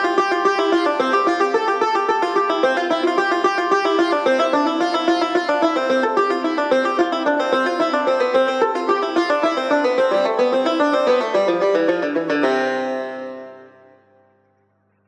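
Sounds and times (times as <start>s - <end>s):
tar studies for mezrab e chap: 0.0s - 14.0s.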